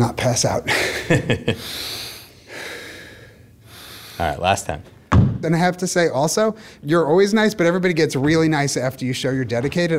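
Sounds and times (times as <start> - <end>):
speech: 0.0 - 2.0, 4.2 - 9.9
deep breath: 1.6 - 4.2.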